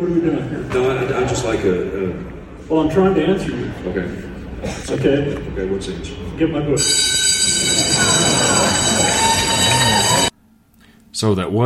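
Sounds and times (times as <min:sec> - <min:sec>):
speech: 0:00.0 - 0:07.2, 0:11.2 - 0:11.6
class period bell ringing: 0:06.8 - 0:10.3.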